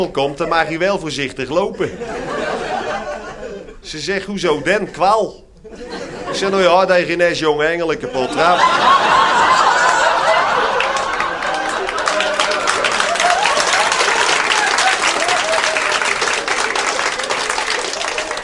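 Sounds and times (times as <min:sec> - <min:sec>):
speech: 0:00.0 - 0:02.4, 0:03.8 - 0:09.2
laughter: 0:00.0 - 0:18.4
audience applause: 0:08.4 - 0:18.4.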